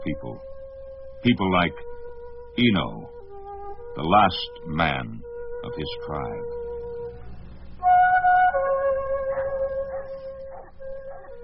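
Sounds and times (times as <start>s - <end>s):
speech: 1.2s - 1.9s, 2.6s - 3.2s, 4.0s - 6.6s
town dog howling: 7.8s - 11.4s
dogs yelping: 9.1s - 11.4s.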